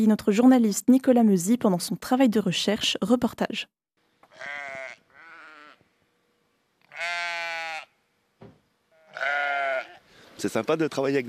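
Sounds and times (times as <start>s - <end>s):
speech: 0.0s - 3.8s, 10.4s - 11.2s
sheep bleating: 4.2s - 5.8s, 6.8s - 8.0s, 8.9s - 10.1s
sharp knock: 8.4s - 8.6s.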